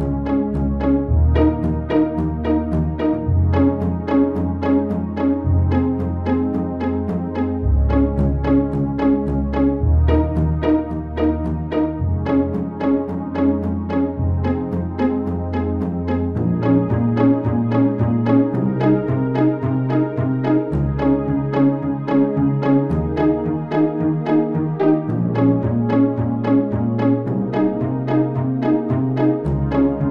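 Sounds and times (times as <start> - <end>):
pizzicato string plucks: 0.0 - 30.0.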